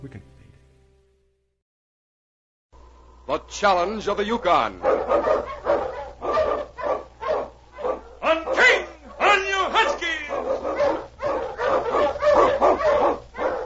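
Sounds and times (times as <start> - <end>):
speech: 3.3 - 5.2
sled dog barking: 4.8 - 13.6.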